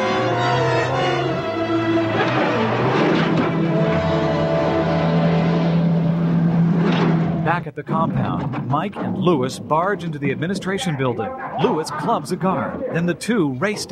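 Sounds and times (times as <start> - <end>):
Land Rover engine roaring as it drives off: 0.0 - 13.8
speech: 7.6 - 13.8.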